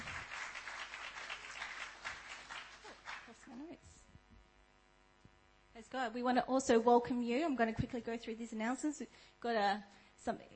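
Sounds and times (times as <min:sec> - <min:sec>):
audience clapping: 0:00.0 - 0:03.7
speech: 0:05.8 - 0:10.5.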